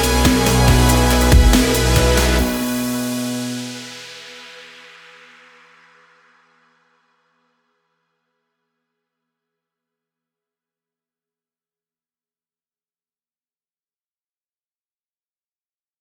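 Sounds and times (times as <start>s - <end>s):
extreme sports dubstep music: 0.0s - 4.1s.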